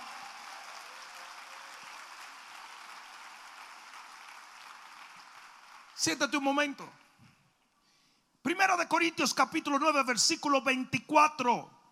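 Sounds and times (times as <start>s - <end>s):
audience applause: 0.0s - 6.1s
speech: 6.0s - 7.0s, 8.5s - 11.8s.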